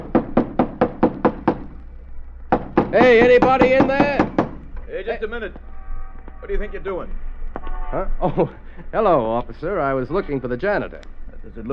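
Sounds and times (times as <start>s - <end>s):
knocking on the locked stage door of an old theater: 0.0s - 1.6s, 2.5s - 4.7s
speech: 2.9s - 4.2s, 4.9s - 5.7s, 6.4s - 7.2s, 7.9s - 11.7s.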